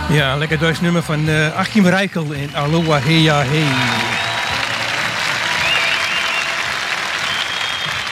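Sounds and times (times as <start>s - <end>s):
speech: 0.1s - 4.1s
crowd applause on live recording: 1.7s - 8.0s.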